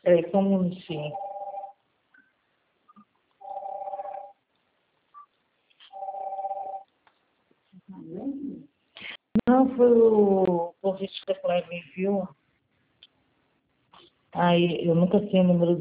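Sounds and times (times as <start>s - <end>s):
speech: 0.0s - 1.3s, 9.5s - 12.4s, 14.4s - 15.8s
telephone ringing: 1.1s - 1.8s, 3.4s - 4.4s, 5.9s - 6.9s.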